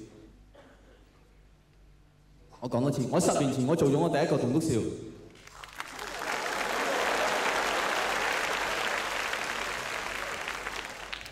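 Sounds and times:
speech: 2.6 - 5.1
audience clapping: 5.4 - 11.3.

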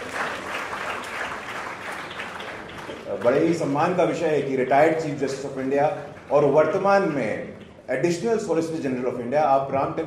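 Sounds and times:
audience applause: 0.0 - 3.6
speech: 3.1 - 10.0.

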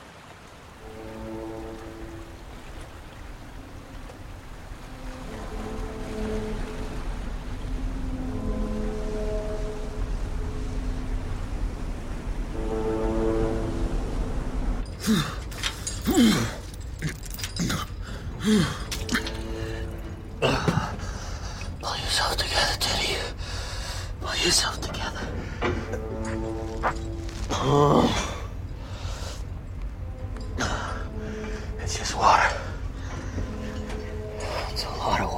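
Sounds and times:
washing sea noise: 0.0 - 35.3
low droning horn-like tones: 0.5 - 16.0, 18.1 - 21.8, 24.2 - 35.3
retching and vomiting aboard a boat at sea in the film Shutter Island: 15.0 - 19.5.

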